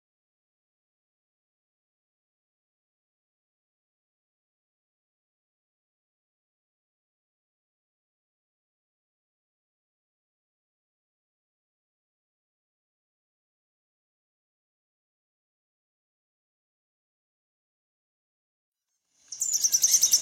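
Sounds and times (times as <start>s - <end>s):
rufous-collared sparrow singing: 19.2s - 20.2s.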